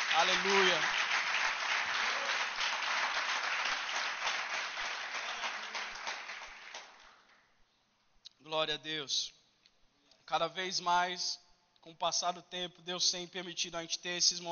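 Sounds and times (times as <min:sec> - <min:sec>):
audience applauding: 0:00.0 - 0:07.3
speech: 0:00.2 - 0:01.0, 0:08.6 - 0:09.4, 0:10.3 - 0:14.4.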